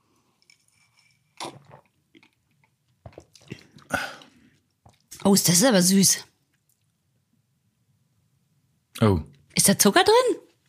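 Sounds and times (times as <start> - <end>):
someone gulping a mate drink: 1.3 - 5.2
speech: 5.2 - 6.3, 9.6 - 10.4.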